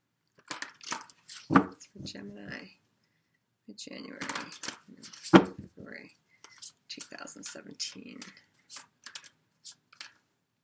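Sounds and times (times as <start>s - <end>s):
tarot cards being shuffled: 0.4s - 2.6s, 4.2s - 5.7s, 6.5s - 10.2s
speech: 1.5s - 2.8s, 3.7s - 6.2s, 7.3s - 8.5s.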